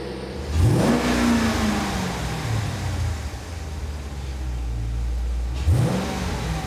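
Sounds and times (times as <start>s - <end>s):
car engine revving: 0.0s - 6.6s.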